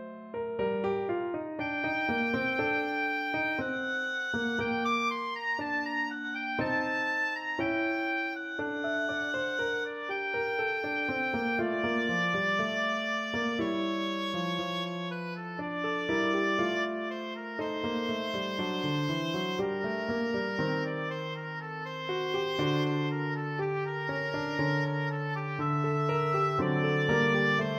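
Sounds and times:
oboe: 0.4 - 27.7.

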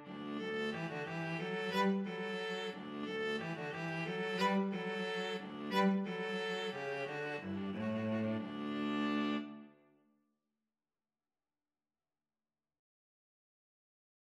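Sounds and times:
cello: 0.0 - 9.8
viola: 0.0 - 9.8.

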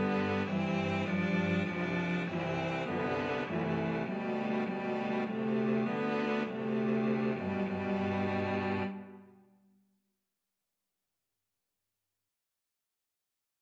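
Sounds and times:
cello trio playing a hymn: 0.0 - 9.2.

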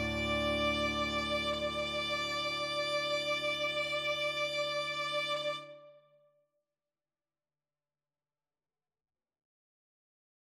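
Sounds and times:
violin: 0.0 - 6.1.

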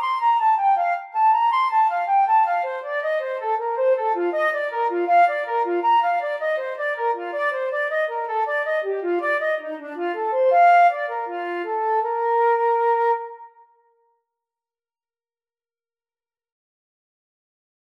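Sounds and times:
flute playing a bourree: 0.0 - 13.9.

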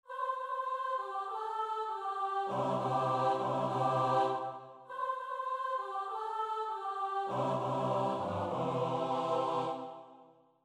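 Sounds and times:
choir singing: 0.0 - 10.4.

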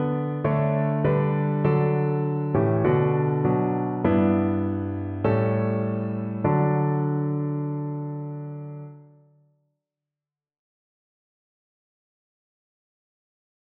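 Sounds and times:
piano piece: 0.0 - 9.2.

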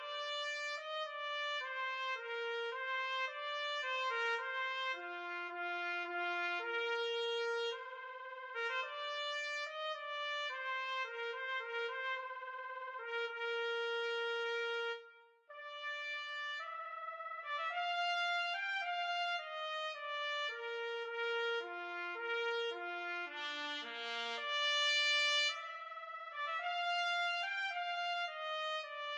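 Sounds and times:
trumpet piece: 0.0 - 29.1.

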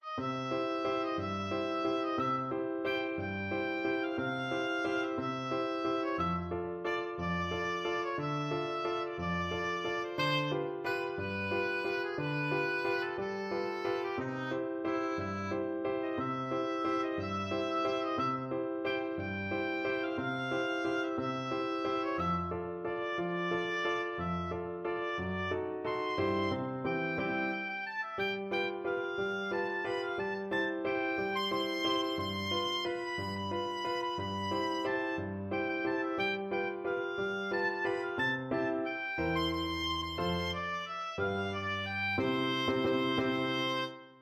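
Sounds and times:
oboe: 0.0 - 44.1.

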